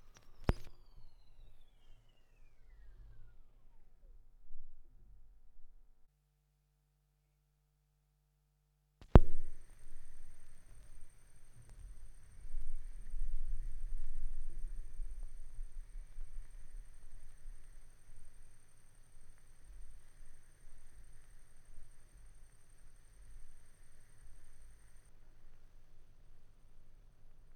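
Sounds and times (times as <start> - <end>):
vinyl record noise: 0.0 - 1.2, 9.0 - 25.1.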